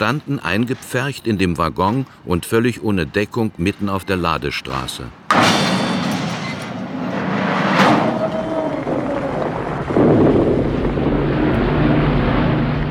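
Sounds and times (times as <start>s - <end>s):
speech: 0.0s - 5.6s
low-flying warplanes droning overhead: 5.9s - 12.8s.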